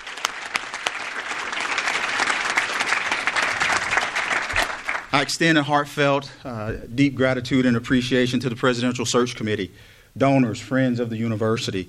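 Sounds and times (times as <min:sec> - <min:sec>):
audience round of applause: 0:00.0 - 0:05.3
speech: 0:05.2 - 0:11.8.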